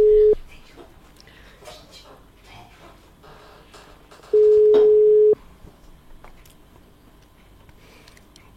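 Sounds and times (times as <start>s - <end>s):
phone ringing tone on an outgoing call: 0.0s - 0.4s, 4.4s - 5.4s.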